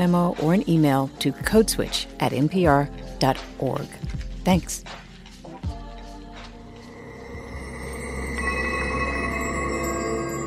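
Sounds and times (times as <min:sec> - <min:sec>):
speech: 0:00.0 - 0:05.0
chimes: 0:06.7 - 0:10.4.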